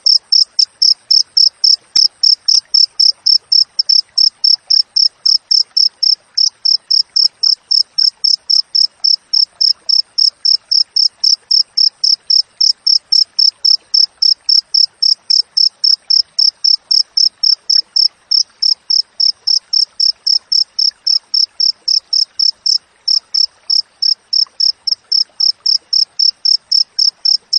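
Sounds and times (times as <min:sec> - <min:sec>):
cricket chirping: 0:00.0 - 0:27.5.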